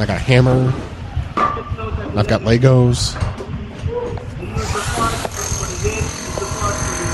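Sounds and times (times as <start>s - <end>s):
speech: 0.0s - 0.9s, 2.1s - 3.3s
hammer drill running: 4.6s - 7.1s.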